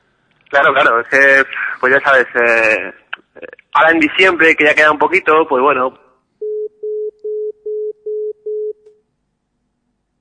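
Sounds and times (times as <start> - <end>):
speech: 0.5 - 6.0
phone busy tone beeps after a dropped call: 6.4 - 9.0.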